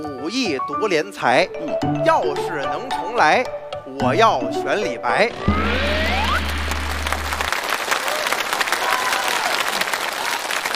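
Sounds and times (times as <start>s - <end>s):
speech: 0.0s - 5.8s
audience applause: 5.6s - 10.7s.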